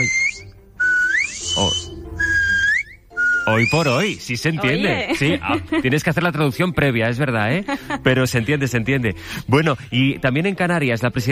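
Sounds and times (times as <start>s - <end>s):
Silbo Herreño whistled language greeting: 0.0s - 4.3s
speech: 3.5s - 11.2s.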